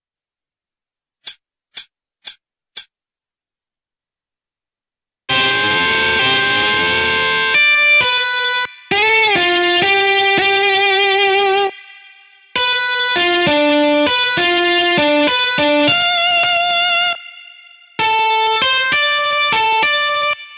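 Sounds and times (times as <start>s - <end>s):
instrumental solo: 5.3s - 11.9s, 12.6s - 20.4s.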